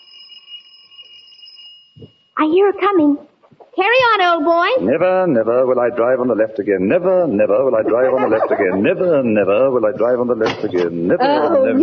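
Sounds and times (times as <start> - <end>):
bell ringing: 0.0 - 2.4
speech: 2.4 - 11.8
laughter: 7.3 - 11.8.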